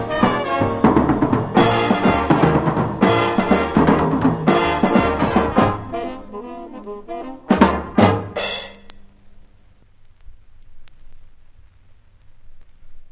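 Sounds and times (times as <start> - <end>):
old blues piano roll: 0.0 - 8.9.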